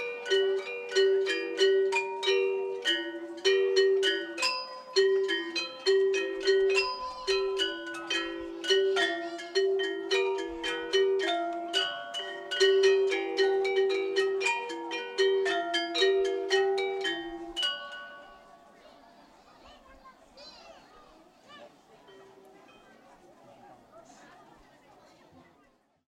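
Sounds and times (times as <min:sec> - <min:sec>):
selunding gamelan playing: 0:00.0 - 0:19.0.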